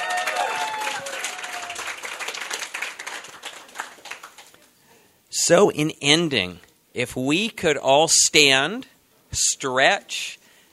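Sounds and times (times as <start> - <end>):
audience applause: 0.0 - 4.6
speech: 5.5 - 10.4.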